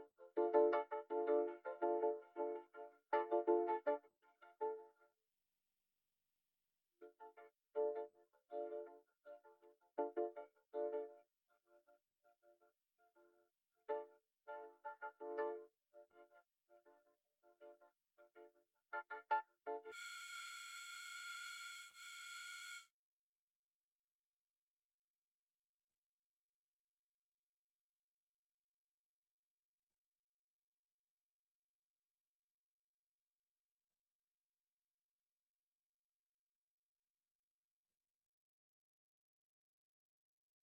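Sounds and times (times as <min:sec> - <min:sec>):
keyboard: 0:00.0 - 0:05.0, 0:07.0 - 0:12.6, 0:13.2 - 0:22.8.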